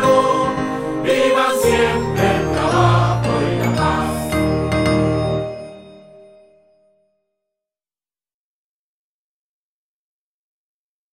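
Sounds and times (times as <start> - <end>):
national anthem: 0.0 - 4.6.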